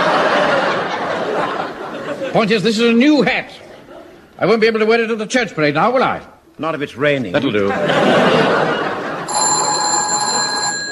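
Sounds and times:
laughter: 0.0 - 2.8, 3.5 - 4.4, 7.4 - 10.6
busy noisy background: 0.0 - 10.9
speech: 2.3 - 3.6, 4.4 - 8.8
telephone bell ringing: 9.1 - 10.9.

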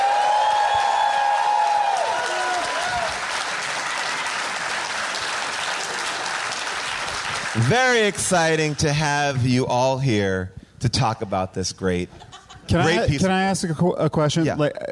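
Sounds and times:
high whoops and cheers: 0.0 - 4.8
crowd applauding: 0.0 - 9.7
speech: 7.6 - 14.9.

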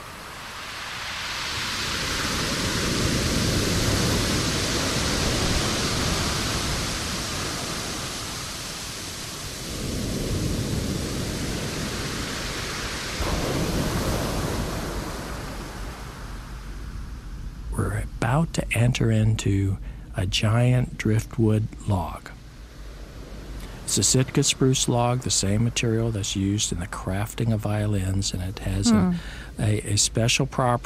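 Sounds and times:
ocean surf on Rialto Beach: 0.0 - 17.7, 22.6 - 25.8
speech: 18.4 - 22.4, 23.9 - 30.8.

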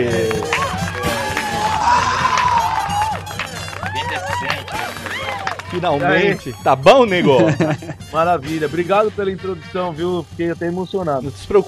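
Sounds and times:
crowd applauding: 0.0 - 6.5
speech: 5.7 - 11.6
laughter: 7.1 - 8.1.

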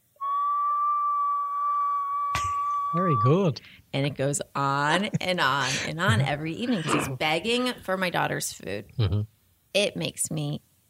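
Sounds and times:
person imitating a dog's tea-kettle whistle: 0.2 - 3.5
speech: 2.9 - 10.7.

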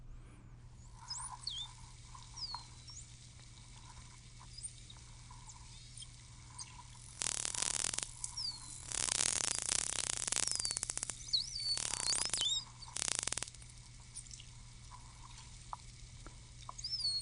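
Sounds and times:
steady low hum: 0.0 - 17.2
white dolphin sonar clicks: 0.9 - 17.2
white dolphin whistles underwater: 1.0 - 3.1, 4.4 - 13.6, 16.7 - 17.2.

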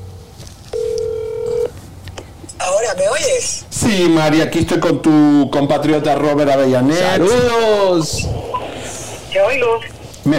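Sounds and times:
telephone ring tone: 0.7 - 1.7
speech: 2.8 - 8.4, 9.3 - 10.3.

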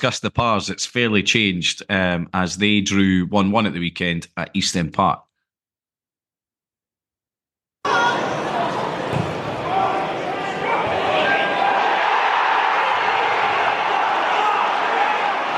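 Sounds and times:
speech: 0.0 - 5.2
Arbroath football crowd roaring at an equalising goal at East End Park: 7.9 - 15.5.

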